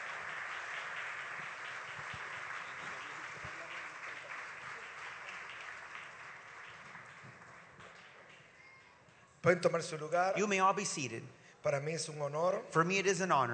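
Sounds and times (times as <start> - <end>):
audience applause: 0.0 - 8.7
speech: 9.4 - 13.5.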